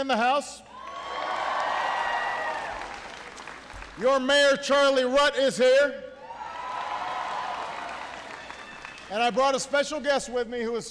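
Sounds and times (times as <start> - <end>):
speech: 0.0 - 0.7, 4.0 - 6.0, 9.1 - 10.9
political audience applauding after an introduction: 0.8 - 4.0, 6.4 - 9.6.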